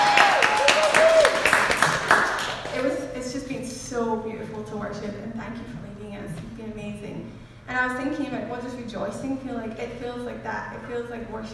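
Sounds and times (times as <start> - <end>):
round of applause from a crowd: 0.0 - 3.0
speech: 4.7 - 11.5.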